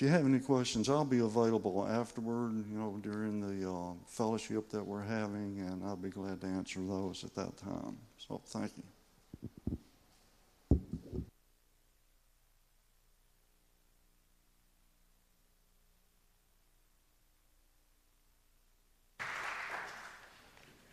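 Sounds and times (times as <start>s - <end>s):
speech: 0.0s - 9.8s
sharp knocks: 10.7s - 11.3s
crowd clapping: 19.2s - 20.9s.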